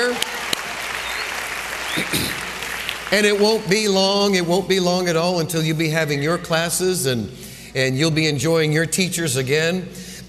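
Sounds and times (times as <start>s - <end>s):
church congregation applauding the children: 0.0s - 4.9s
speech: 3.1s - 10.2s.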